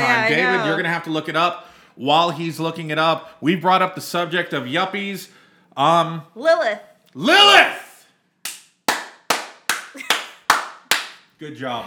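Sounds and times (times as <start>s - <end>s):
speech: 0.3s - 7.8s, 11.4s - 11.8s
hand clapping: 8.4s - 11.3s.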